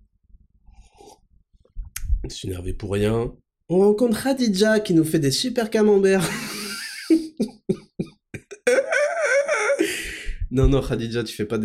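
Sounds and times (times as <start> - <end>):
sip of a drink: 0.8 - 1.2
speech: 2.3 - 6.5, 10.6 - 11.6
laughter: 6.2 - 10.0.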